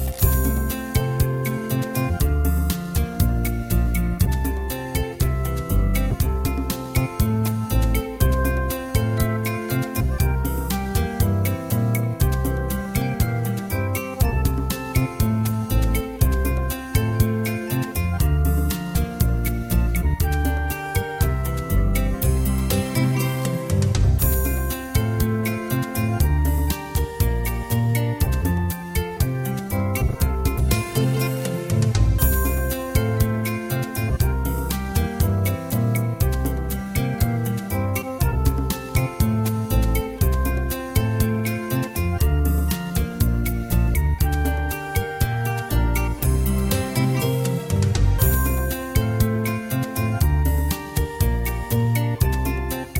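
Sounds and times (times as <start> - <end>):
karaoke singing: 0.1 - 52.9.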